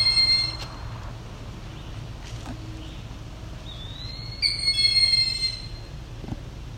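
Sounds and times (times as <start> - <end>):
eastern wood-pewee calling: 0.0 - 0.8, 2.8 - 6.0
steady low rumble: 0.0 - 6.7.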